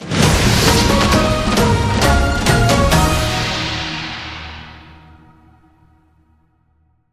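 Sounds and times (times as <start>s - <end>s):
large win sound: 0.4s - 4.4s.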